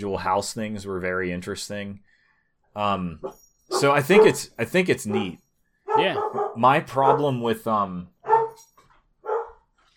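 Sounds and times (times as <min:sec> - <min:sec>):
speech: 0:00.0 - 0:02.1, 0:02.8 - 0:05.4, 0:06.0 - 0:08.7
dog barking: 0:03.2 - 0:04.4, 0:05.1 - 0:07.4, 0:08.2 - 0:08.6, 0:09.2 - 0:09.7.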